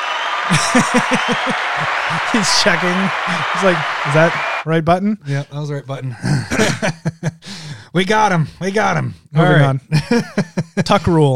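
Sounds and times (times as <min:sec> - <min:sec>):
crowd clapping: 0:00.0 - 0:04.7
laughter: 0:00.3 - 0:04.6, 0:06.2 - 0:07.6, 0:09.9 - 0:11.1
speech: 0:00.5 - 0:11.3.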